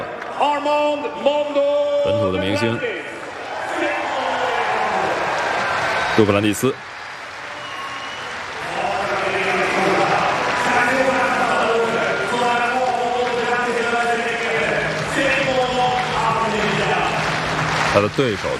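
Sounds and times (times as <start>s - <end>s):
speech: 0.4s - 3.1s, 6.2s - 6.9s, 18.0s - 18.5s
rhythmic stadium audience clapping: 3.1s - 18.5s.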